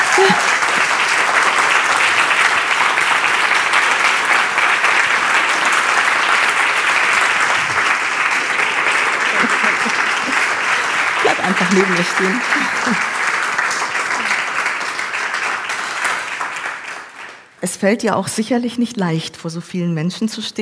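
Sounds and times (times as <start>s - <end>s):
laughter: 0.0s - 1.0s, 5.2s - 13.3s
sustained loud applause from a large audience: 0.0s - 17.5s
speech: 0.2s - 0.5s, 11.7s - 13.2s, 17.6s - 20.6s.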